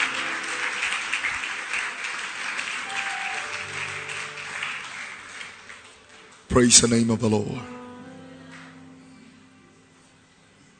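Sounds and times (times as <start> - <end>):
audience clapping hands: 0.0 - 7.5, 8.5 - 8.8
speech: 6.6 - 7.8.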